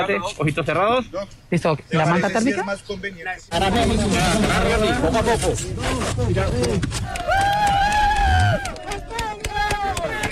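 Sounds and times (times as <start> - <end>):
speech: 0.0 - 7.6
rescue teams cheering and shouting: 7.0 - 10.2
long high-pitched yell: 7.2 - 10.2.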